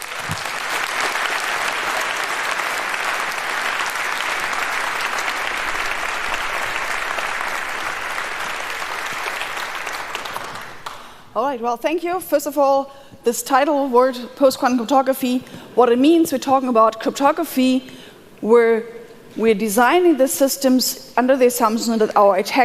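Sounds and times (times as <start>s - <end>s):
large audience applause: 0.0s - 11.1s
speech: 11.4s - 22.6s.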